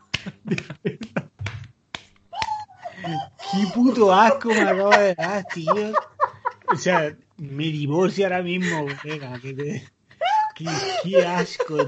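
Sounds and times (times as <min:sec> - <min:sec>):
person clapping hands: 0:00.0 - 0:02.6
laughter: 0:00.1 - 0:01.4, 0:02.4 - 0:11.8
speech: 0:00.2 - 0:01.0, 0:03.1 - 0:06.0, 0:06.7 - 0:10.0, 0:10.6 - 0:11.8.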